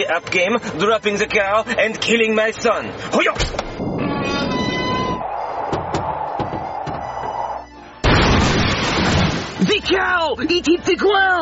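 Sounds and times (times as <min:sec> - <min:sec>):
speech: 0:00.0 - 0:03.9, 0:09.9 - 0:11.3
steady whining tone: 0:03.6 - 0:08.0
bomb explosion: 0:08.0 - 0:09.6.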